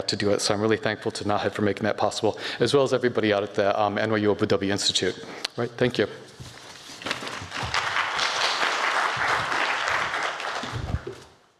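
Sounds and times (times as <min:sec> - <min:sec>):
speech: 0:00.1 - 0:06.4
audience applause: 0:07.5 - 0:11.3.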